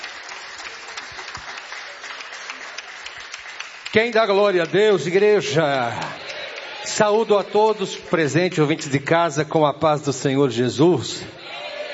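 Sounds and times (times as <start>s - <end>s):
church audience clapping joyfully: 0.0s - 8.7s
speech: 3.9s - 6.2s, 6.9s - 11.4s.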